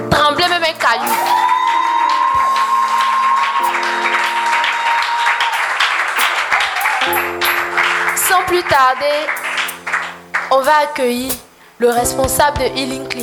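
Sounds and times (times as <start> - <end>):
crowd clapping and cheering: 0.8 - 10.6
speech: 8.6 - 9.4, 10.6 - 13.2.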